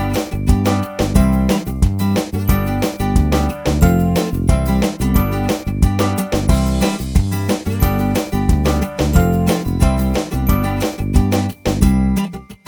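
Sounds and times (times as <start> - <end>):
TV commercial: 0.0 - 12.2.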